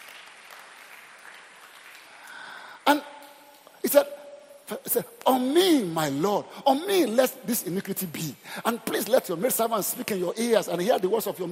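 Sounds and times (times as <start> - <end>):
audience clapping at a sermon: 0.0 - 3.0
speech: 3.9 - 4.2, 4.9 - 11.5.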